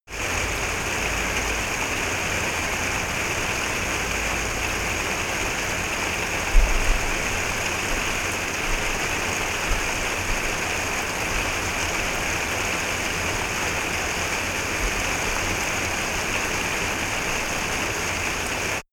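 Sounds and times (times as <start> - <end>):
summer rain: 0.1 - 18.8.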